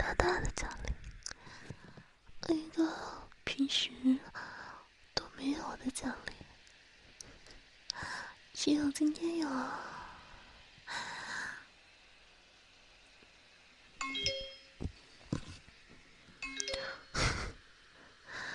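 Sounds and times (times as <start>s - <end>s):
quiet hiss: 0.0s - 18.5s
speech: 8.6s - 9.9s
phone message notification chimes: 14.0s - 14.8s.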